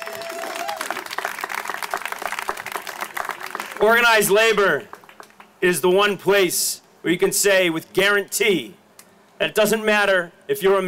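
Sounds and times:
audience applause: 0.0s - 4.0s
speech: 3.8s - 4.9s, 5.6s - 8.8s, 9.4s - 10.8s.

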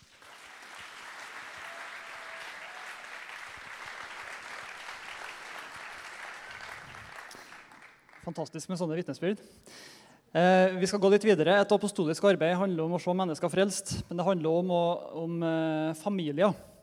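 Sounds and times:
audience applause: 0.0s - 8.4s
speech: 8.2s - 16.7s.

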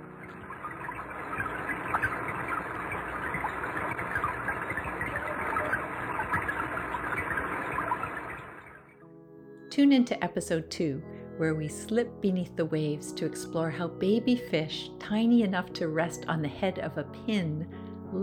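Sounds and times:
rain recorded underwater: 0.0s - 8.9s
speech: 9.8s - 18.2s.

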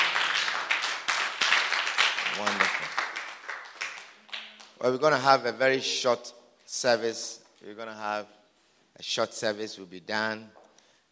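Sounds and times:
audience clapping: 0.0s - 5.0s
speech: 2.4s - 2.6s, 4.8s - 8.4s, 9.0s - 10.6s.

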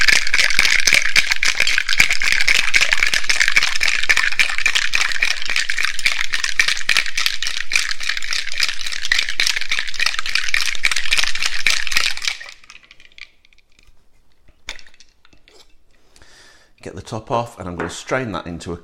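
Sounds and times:
cocktail shaker shaken hard with ice: 0.0s - 13.9s
speech: 17.0s - 18.8s.

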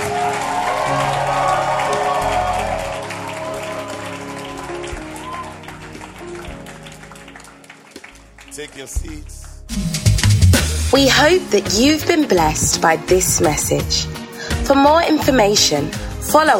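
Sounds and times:
audience hand clapping: 0.0s - 10.4s
speech: 8.6s - 9.9s, 10.9s - 16.5s.

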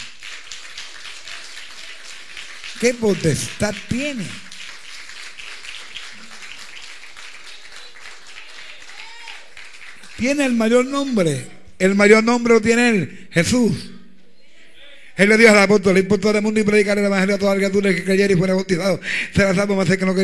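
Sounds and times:
audience applauding: 0.0s - 11.0s
speech: 2.8s - 4.5s, 10.2s - 13.9s, 15.2s - 20.2s.

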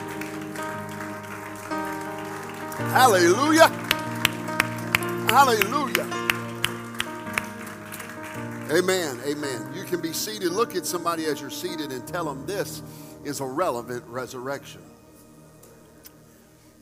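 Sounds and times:
audience hand clapping: 0.0s - 10.0s
speech: 2.8s - 3.8s, 5.3s - 6.2s, 8.7s - 14.9s.

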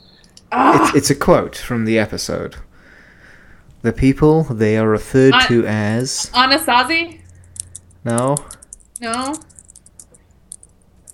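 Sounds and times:
speech: 0.5s - 2.7s, 3.8s - 7.2s, 8.0s - 9.5s
typing on a computer keyboard: 7.4s - 11.1s.

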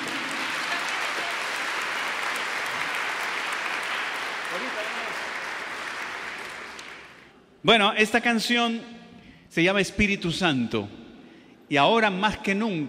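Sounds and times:
audience applause: 0.0s - 7.3s
speech: 7.6s - 11.0s, 11.7s - 12.8s.

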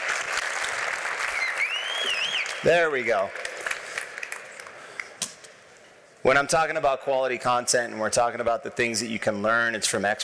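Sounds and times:
audience applause: 0.0s - 5.1s
speech: 2.6s - 3.4s, 6.2s - 10.2s.

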